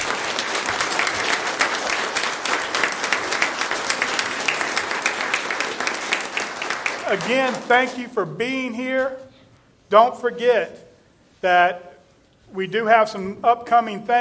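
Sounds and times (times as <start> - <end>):
audience applause for a choir: 0.0 - 8.0
speech: 7.1 - 9.2, 9.9 - 10.8, 11.4 - 11.9, 12.5 - 14.1.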